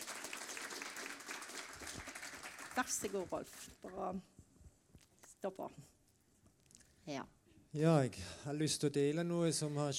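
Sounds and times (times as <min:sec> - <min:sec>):
audience applause at a gathering: 0:00.0 - 0:03.5
speech: 0:02.8 - 0:04.3, 0:05.4 - 0:06.0, 0:07.1 - 0:09.9.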